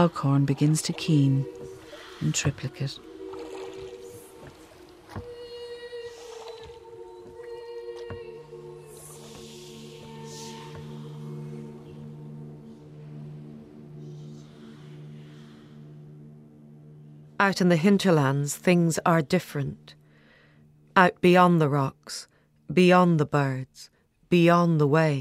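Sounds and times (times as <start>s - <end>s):
speech: 0.0s - 1.6s, 2.2s - 3.1s, 17.4s - 20.0s, 21.0s - 25.1s
rowing a boat through water: 0.0s - 8.4s.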